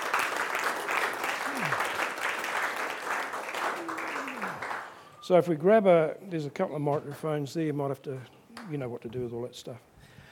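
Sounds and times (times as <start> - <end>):
audience applause at a church gathering welcoming guests: 0.0 - 5.1
speech: 5.3 - 9.9.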